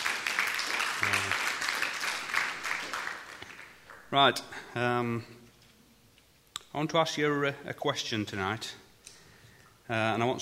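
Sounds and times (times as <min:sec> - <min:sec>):
crowd applauding for the band: 0:00.0 - 0:04.1
speech: 0:04.1 - 0:05.4, 0:06.8 - 0:08.8, 0:09.9 - 0:10.4.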